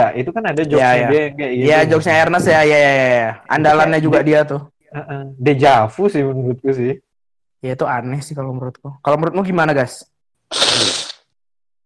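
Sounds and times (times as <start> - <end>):
speech: 0.1 - 7.0, 7.6 - 11.0
single wet snotty sneeze: 10.5 - 11.4.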